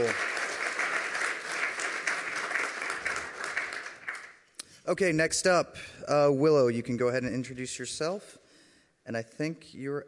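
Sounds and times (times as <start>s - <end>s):
audience round of applause: 0.0s - 4.4s
speech: 4.9s - 8.4s, 9.1s - 10.0s.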